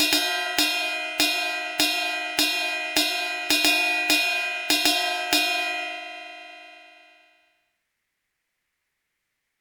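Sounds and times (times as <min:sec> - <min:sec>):
cymbal combo: 0:00.0 - 0:07.1.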